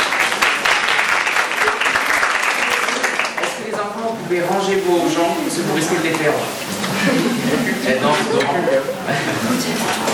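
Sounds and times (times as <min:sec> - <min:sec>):
audience applauding students: 0:00.0 - 0:04.2
speech: 0:04.3 - 0:10.1
laughter: 0:06.6 - 0:10.1.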